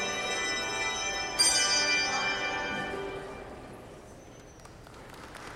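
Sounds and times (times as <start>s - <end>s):
carillon bells playing a prelude: 0.0s - 4.2s.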